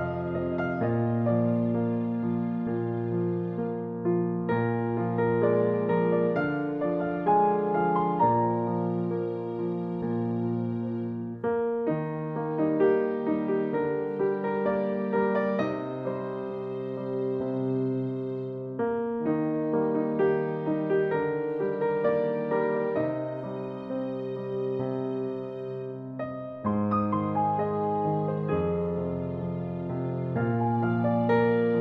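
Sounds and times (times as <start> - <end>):
piano improvisation: 0.0 - 31.7.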